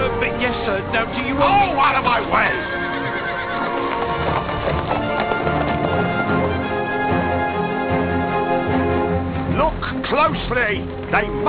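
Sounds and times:
horse hooves galloping: 0.0 - 11.4
speech: 0.7 - 2.8, 10.2 - 11.4
horse whinnying: 1.3 - 8.0.

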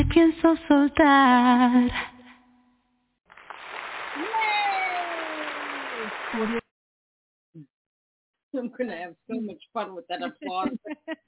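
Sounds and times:
speech: 0.0 - 2.1, 6.3 - 6.6, 8.5 - 11.2
crowd applause: 3.3 - 6.6
laughter: 10.2 - 11.2.

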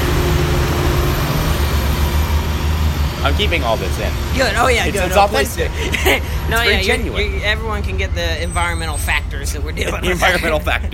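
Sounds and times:
heavy truck rumbling past: 0.0 - 10.9
speech: 3.4 - 10.9
laughter: 4.4 - 7.4, 9.6 - 10.9.

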